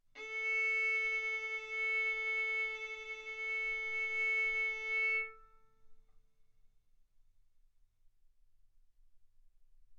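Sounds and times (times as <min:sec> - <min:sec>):
violin bowed arco notes: 0:00.2 - 0:05.5.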